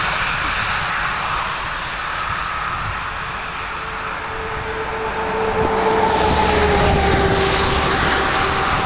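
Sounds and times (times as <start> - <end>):
autobahn traffic: 0.0 - 8.8.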